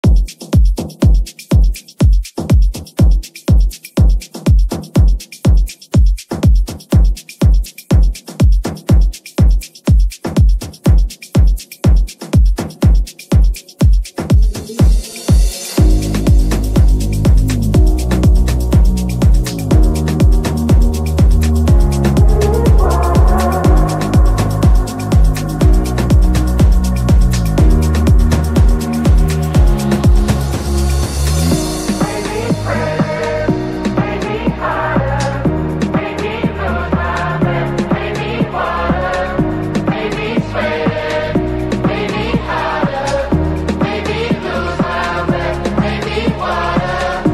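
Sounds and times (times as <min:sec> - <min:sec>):
afro house remix music: 0:00.0 - 0:47.3.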